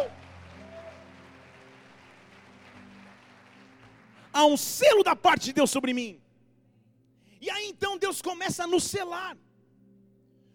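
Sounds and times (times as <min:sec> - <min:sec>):
audience applause: 0:00.0 - 0:04.4
speech: 0:04.4 - 0:06.2, 0:07.4 - 0:09.5.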